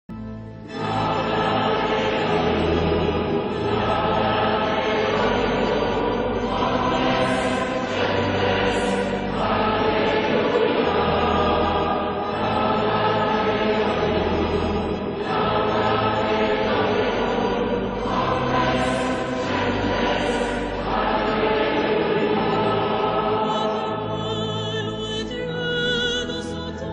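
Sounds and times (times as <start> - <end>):
choral music: 0.1 - 26.9.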